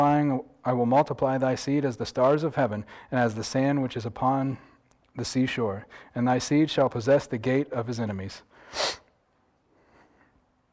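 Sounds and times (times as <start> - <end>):
speech: 0.0 - 9.0
sneeze from allergies: 8.8 - 9.1.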